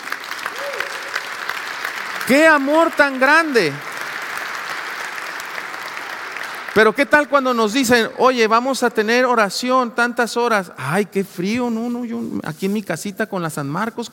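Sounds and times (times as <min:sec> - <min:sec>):
audience applause: 0:00.0 - 0:07.5
speech: 0:02.3 - 0:03.9, 0:06.8 - 0:14.1.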